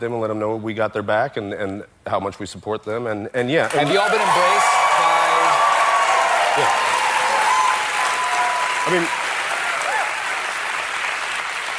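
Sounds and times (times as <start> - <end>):
speech: 0.0 - 4.9, 8.9 - 9.2
audience applause: 3.7 - 11.7.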